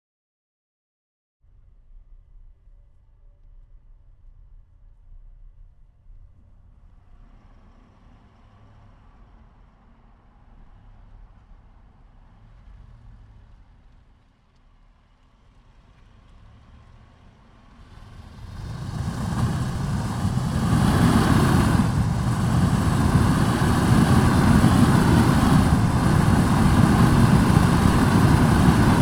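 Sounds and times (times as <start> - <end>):
Range Rover SDV8 exhaust driving fast, left side onboard: 17.8 - 29.0.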